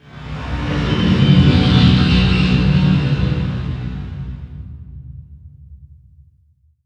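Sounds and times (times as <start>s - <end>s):
atmospheric visual effects sounds: 0.0s - 4.7s.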